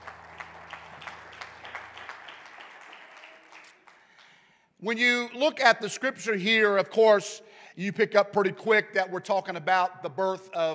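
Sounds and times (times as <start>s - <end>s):
audience clapping hands: 0.0s - 4.5s
speech: 4.8s - 10.7s.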